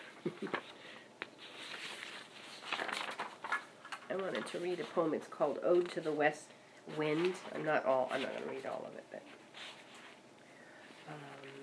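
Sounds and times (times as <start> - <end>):
speech: 0.2 - 0.8, 4.1 - 9.4
shuffling sheets of paper: 0.4 - 6.2, 7.0 - 8.9.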